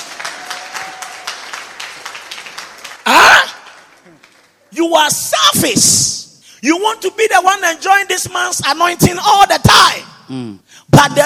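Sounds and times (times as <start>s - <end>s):
audience clapping: 0.0s - 4.7s
speech: 4.8s - 11.2s.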